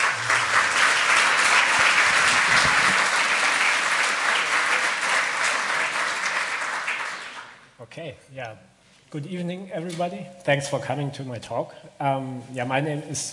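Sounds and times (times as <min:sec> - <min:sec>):
audience applause: 0:00.0 - 0:07.6
speech: 0:08.0 - 0:13.3.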